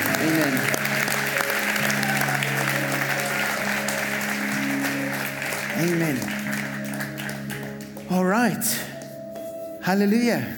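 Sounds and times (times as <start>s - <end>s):
audience clapping: 0.0s - 8.4s
speech: 5.8s - 6.4s, 8.1s - 8.9s, 9.8s - 10.5s.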